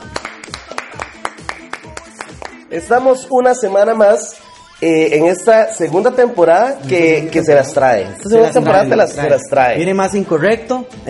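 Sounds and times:
two hosts clapping hands: 0.0 - 2.7, 6.8 - 7.4
speech: 2.7 - 11.0.

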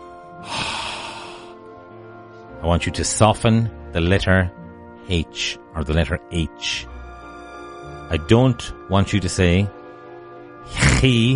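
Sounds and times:
breathing onto glasses to clean them: 0.4 - 1.6
speech: 2.6 - 6.9, 8.1 - 9.8, 10.6 - 11.3.

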